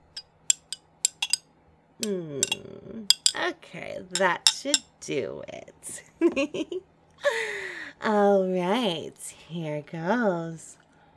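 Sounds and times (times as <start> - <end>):
spoon swirling a drink in a cup: 0.0 - 1.4, 2.4 - 3.4, 4.2 - 4.8
speech: 2.0 - 10.8.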